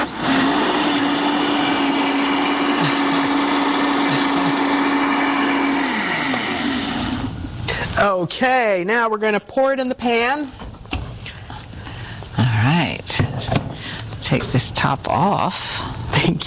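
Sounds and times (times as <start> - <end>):
blender mixing ingredients: 0.0 - 7.5
speech: 8.1 - 10.6, 13.0 - 13.6, 14.3 - 16.4.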